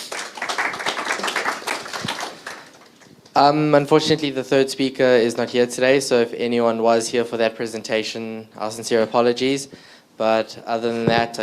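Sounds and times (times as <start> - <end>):
audience applause: 0.0 - 3.1
speech: 3.4 - 11.4.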